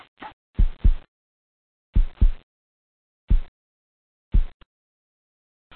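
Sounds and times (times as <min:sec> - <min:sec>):
lo-fi heartbeat: 0:00.6 - 0:01.1, 0:01.9 - 0:02.4, 0:03.3 - 0:03.5, 0:04.3 - 0:04.6.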